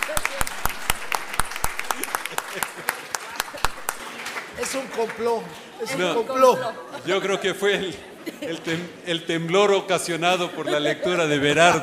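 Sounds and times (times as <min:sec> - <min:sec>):
audience applause: 0:00.0 - 0:06.2
laughter: 0:01.8 - 0:04.0, 0:05.8 - 0:09.0, 0:10.0 - 0:11.8
speech: 0:04.7 - 0:11.8.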